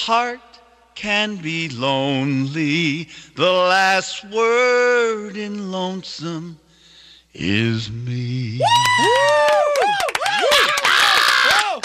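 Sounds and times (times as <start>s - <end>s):
speech: 0.0s - 6.6s, 7.4s - 11.8s
audience member yelling encore: 8.6s - 11.8s.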